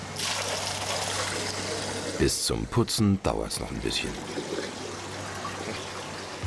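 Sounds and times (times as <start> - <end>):
water being drained through a thick hose: 0.2 - 2.4, 3.7 - 6.3
speech: 2.2 - 4.6.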